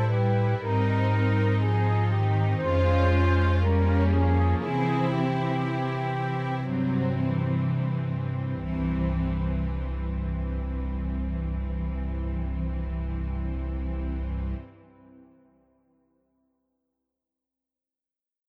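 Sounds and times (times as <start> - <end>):
organ playing an elegy: 0.0 - 14.5.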